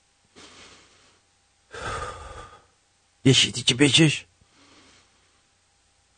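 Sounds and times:
deep breath: 0.3s - 2.8s, 4.4s - 5.5s
speech: 3.2s - 4.3s.

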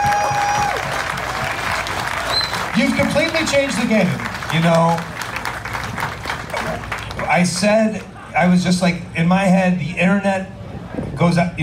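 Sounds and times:
audience applause honouring a wrestler: 0.0s - 8.1s
shrill whistle-like tone: 2.3s - 2.6s
speech: 2.8s - 5.1s, 7.3s - 10.6s, 11.2s - 11.6s.

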